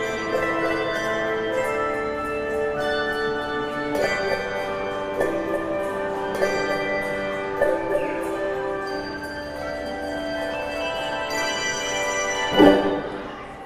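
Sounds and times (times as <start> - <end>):
handbells ringing: 0.0 - 13.5.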